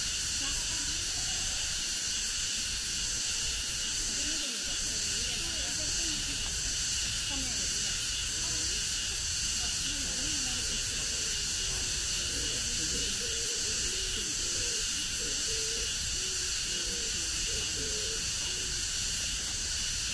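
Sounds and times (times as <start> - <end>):
cicadas after rain at the Ming Xiaoling tomb in Nanjing droning: 0.0 - 20.1
faint voices murmuring: 0.1 - 20.1.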